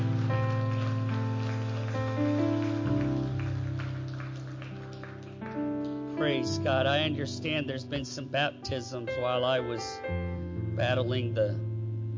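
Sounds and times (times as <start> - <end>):
audience clapping: 0.0 - 6.4
organ-like tones and steady music: 0.0 - 12.1
speech: 6.2 - 11.7.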